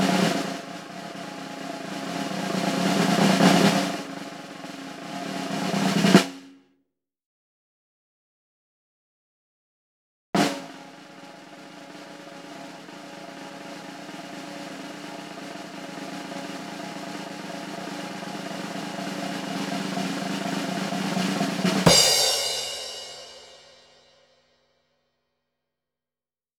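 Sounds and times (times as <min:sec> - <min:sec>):
snare drum roll: 0:00.0 - 0:06.5, 0:10.4 - 0:24.1.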